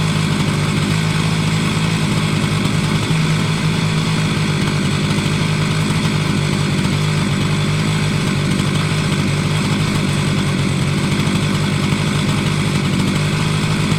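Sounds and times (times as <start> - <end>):
chainsaw: 0.0 - 13.9.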